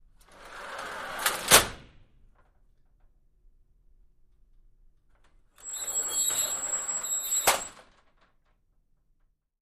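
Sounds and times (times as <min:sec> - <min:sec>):
sliding metal accordion door opening and closing: 0:00.3 - 0:01.9, 0:05.6 - 0:08.1.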